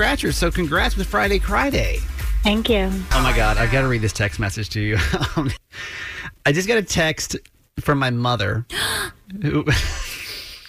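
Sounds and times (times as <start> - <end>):
speech: 0.0 - 10.0
person gasping: 5.7 - 6.4.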